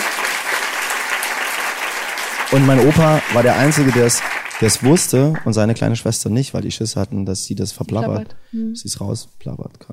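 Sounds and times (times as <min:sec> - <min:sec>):
applause: 0:00.0 - 0:05.8
speech: 0:02.5 - 0:09.9.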